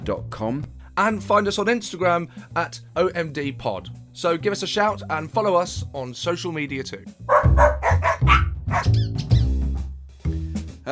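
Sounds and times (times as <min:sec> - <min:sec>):
speech: 0:00.0 - 0:09.3
dog grumbling: 0:07.3 - 0:08.9.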